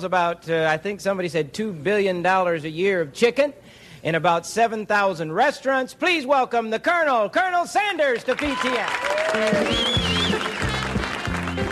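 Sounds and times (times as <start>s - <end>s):
speech: 0.0s - 10.2s
standing ovation for Colonel Sanders on a televised Christian talk show: 8.2s - 11.6s
music with sustained tones: 9.5s - 11.6s.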